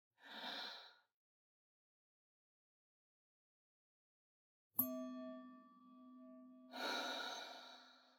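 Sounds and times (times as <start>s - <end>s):
bell: 4.8s - 8.0s.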